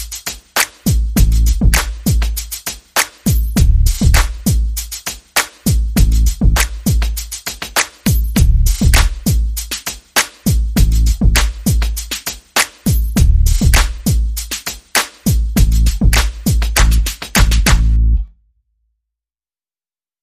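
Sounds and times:
percussion: 0:00.0 - 0:18.0
bass: 0:01.2 - 0:02.0, 0:03.6 - 0:04.4, 0:06.0 - 0:06.8, 0:08.4 - 0:09.3, 0:10.8 - 0:11.6, 0:13.2 - 0:14.1, 0:15.6 - 0:18.3.

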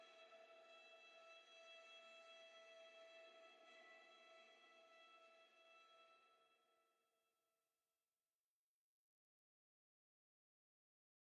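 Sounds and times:
strings: 0:00.0 - 0:06.6.

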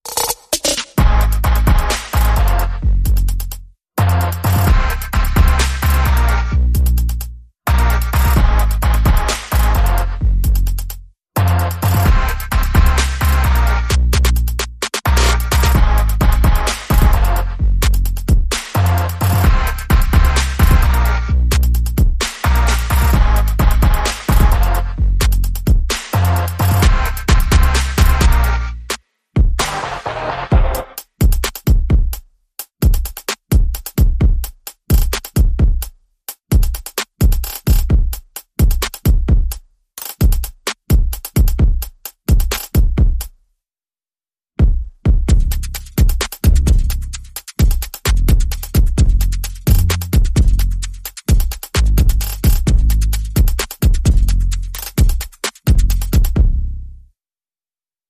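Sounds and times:
percussion: 0:00.0 - 0:43.4, 0:44.6 - 0:56.8
bass: 0:00.8 - 0:29.0, 0:29.6 - 0:31.0, 0:44.6 - 0:55.0, 0:55.6 - 0:57.2.

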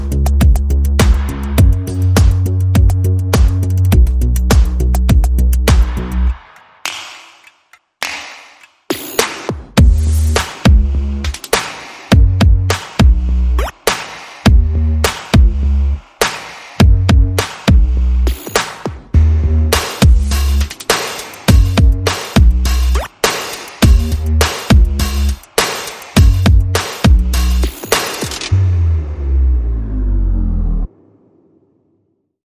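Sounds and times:
bass: 0:00.0 - 0:06.4, 0:09.8 - 0:11.5, 0:12.1 - 0:16.1, 0:16.8 - 0:18.6, 0:19.2 - 0:23.2, 0:23.8 - 0:25.6, 0:26.2 - 0:30.9
percussion: 0:00.0 - 0:29.7.

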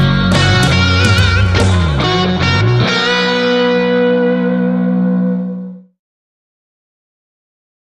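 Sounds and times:
ballad with wah effect: 0:00.0 - 0:05.8.

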